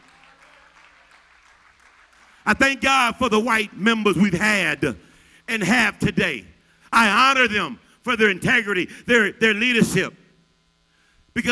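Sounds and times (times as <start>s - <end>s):
audience clapping hands: 0.0s - 2.8s
speech: 2.5s - 10.2s.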